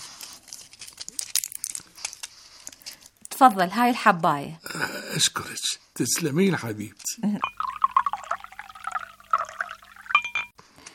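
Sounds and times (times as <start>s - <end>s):
speech: 3.4s - 7.6s
water pouring into a glass: 7.4s - 10.5s.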